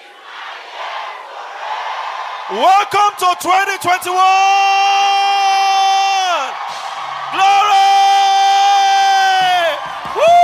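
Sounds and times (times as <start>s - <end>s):
church congregation shouting together: 0.0s - 10.4s
speech: 2.5s - 5.2s.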